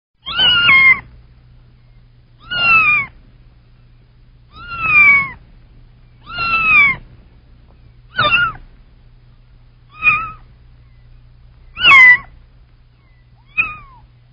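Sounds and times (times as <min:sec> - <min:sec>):
kitten meowing: 0:00.2 - 0:01.1, 0:02.4 - 0:03.2, 0:04.5 - 0:05.4, 0:06.2 - 0:07.0, 0:08.1 - 0:08.7, 0:09.9 - 0:10.5, 0:11.7 - 0:12.3, 0:13.0 - 0:14.1.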